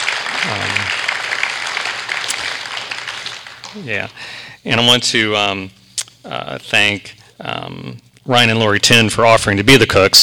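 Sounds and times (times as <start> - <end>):
audience applause: 0.0 - 4.1
speech: 0.4 - 1.0, 3.7 - 10.2.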